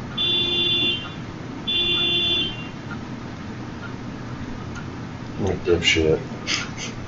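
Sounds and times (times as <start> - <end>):
car horn honking: 0.2 - 2.8
person speaking: 5.4 - 7.0.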